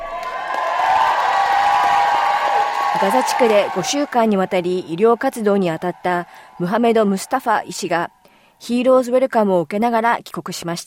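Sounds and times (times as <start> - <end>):
applause: 0.0 - 6.8
crowd cheering: 0.0 - 8.2
speech: 3.0 - 10.8.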